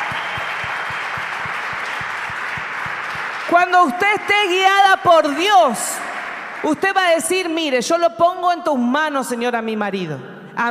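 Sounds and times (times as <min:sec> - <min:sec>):
audience applause: 0:00.0 - 0:07.2
speech: 0:03.5 - 0:10.7.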